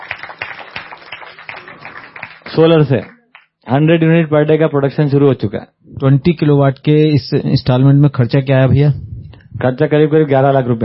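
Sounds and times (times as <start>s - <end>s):
audience clapping loudly to celebrate a 20-kilowatt solar power installation: 0.0s - 3.6s, 9.9s - 10.8s
speech: 2.6s - 10.8s.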